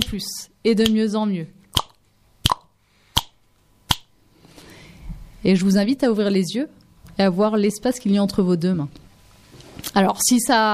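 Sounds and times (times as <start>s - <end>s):
speech: 0.1s - 1.6s, 5.4s - 9.0s, 10.0s - 10.7s
crisp finger snaps: 1.7s - 4.1s.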